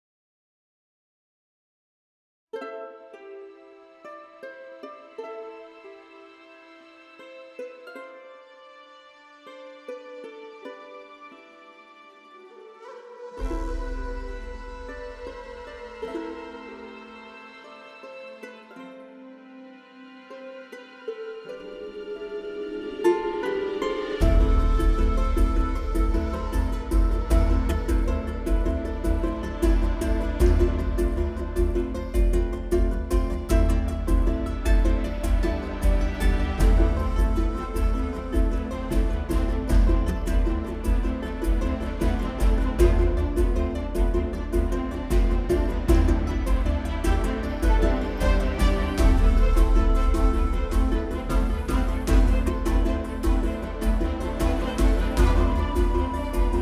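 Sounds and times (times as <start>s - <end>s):
marimba de chonta with orchestra: 21.9s - 56.6s.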